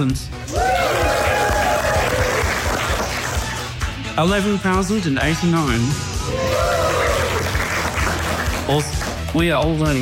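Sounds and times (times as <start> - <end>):
speech: 0.0 - 1.2, 4.2 - 6.5, 8.7 - 10.0
audience clapping and cheering: 0.4 - 4.1, 6.2 - 9.9.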